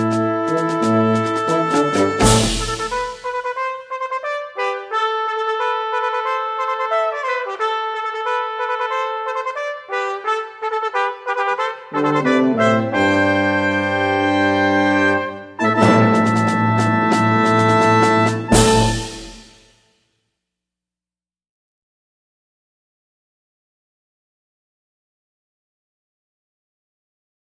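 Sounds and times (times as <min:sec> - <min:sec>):
fiesta brass music: 0:00.0 - 0:19.7.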